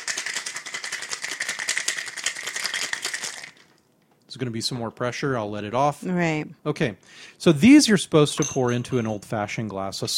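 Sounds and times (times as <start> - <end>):
cocktail shaker rattling with ice: 0.0 - 3.8
speech: 4.4 - 10.1.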